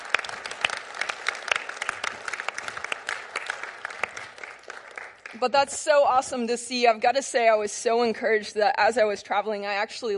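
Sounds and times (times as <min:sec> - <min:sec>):
audience applause: 0:00.0 - 0:05.4
speech: 0:05.4 - 0:10.1.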